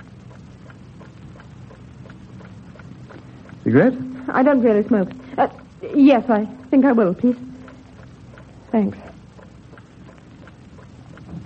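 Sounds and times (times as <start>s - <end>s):
constant low rumbling hiss: 0.0s - 11.4s
loud ticking of a clock: 0.0s - 11.4s
speech: 3.7s - 7.5s, 8.7s - 9.1s.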